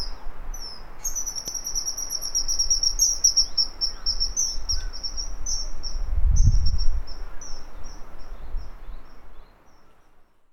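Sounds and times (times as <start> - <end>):
thin very high down-slurred bird chirps: 0.0 - 8.0.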